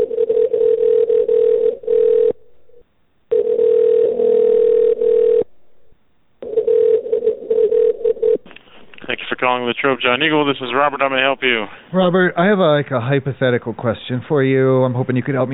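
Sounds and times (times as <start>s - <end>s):
telephone call transfer tone over a phone line: 0.0s - 5.5s, 6.4s - 9.5s
speech: 9.6s - 15.5s.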